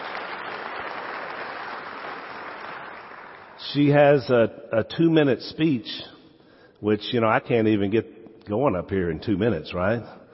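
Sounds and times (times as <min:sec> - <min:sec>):
audience applause: 0:00.0 - 0:03.6
speech: 0:03.6 - 0:06.1, 0:06.8 - 0:10.2.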